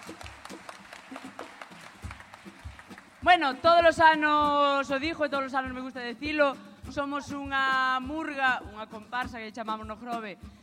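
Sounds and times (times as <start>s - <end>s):
audience applause: 0.0s - 3.6s
speech: 3.3s - 10.6s.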